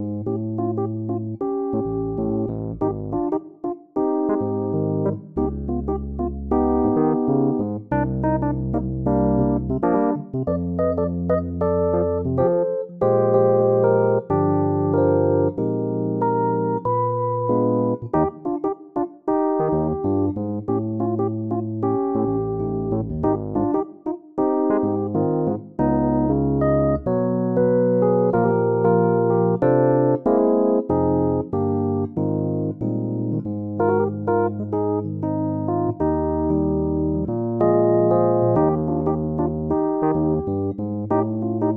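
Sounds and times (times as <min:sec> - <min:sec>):
Fender Rhodes electric piano in Eb with a cool groove: 0:00.0 - 0:41.7.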